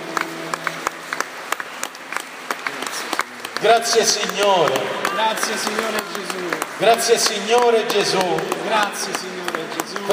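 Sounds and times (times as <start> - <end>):
crowd applause: 0.0 - 10.1
speech: 3.6 - 9.4.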